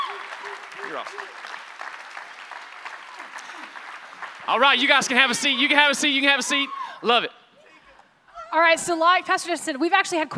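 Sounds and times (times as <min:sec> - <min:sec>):
audience applause welcoming a church lead team on stage: 0:00.0 - 0:06.7
speech: 0:00.8 - 0:01.5, 0:04.5 - 0:07.4, 0:08.5 - 0:10.3.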